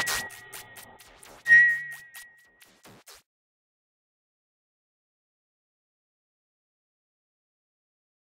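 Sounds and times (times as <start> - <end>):
beeps with echoes: 0.0 - 2.8.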